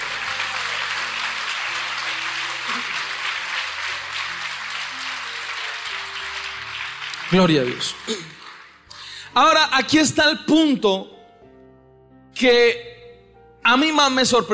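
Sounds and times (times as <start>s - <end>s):
audience applause: 0.0s - 8.9s
speech: 7.3s - 8.4s, 9.4s - 11.2s, 12.4s - 12.9s, 13.7s - 14.5s.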